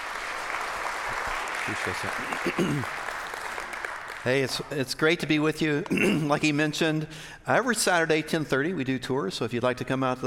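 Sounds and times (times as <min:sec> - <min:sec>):
audience applause welcoming a pastor: 0:00.0 - 0:04.8
speech: 0:01.7 - 0:03.0, 0:04.2 - 0:10.2.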